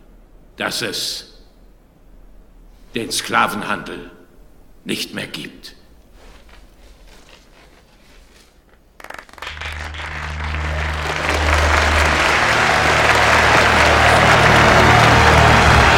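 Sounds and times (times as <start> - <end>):
speech: 0.6 - 1.3, 2.9 - 4.2, 4.8 - 5.8
audience applause: 9.0 - 15.9.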